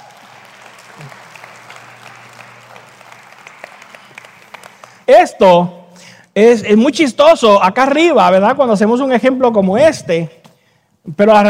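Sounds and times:
audience applause: 0.0s - 5.1s
speech: 1.0s - 1.2s, 5.1s - 5.8s, 6.4s - 10.4s, 11.0s - 11.4s.

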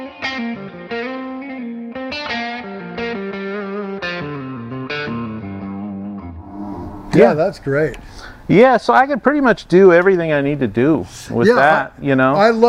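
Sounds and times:
electric guitar through a delay pedal with distortion: 0.0s - 7.2s
speech: 7.2s - 12.6s.

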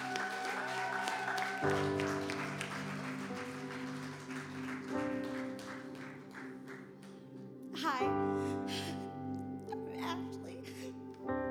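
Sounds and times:
crowd clapping: 0.0s - 7.5s
keyboard or organ chords: 0.0s - 11.4s
speech: 1.6s - 2.2s.

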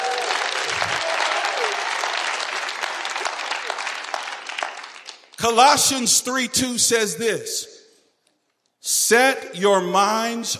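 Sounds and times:
faint cheer: 0.0s - 2.2s
audience hand clapping: 0.0s - 5.6s
speech: 5.4s - 7.7s, 8.9s - 10.5s.

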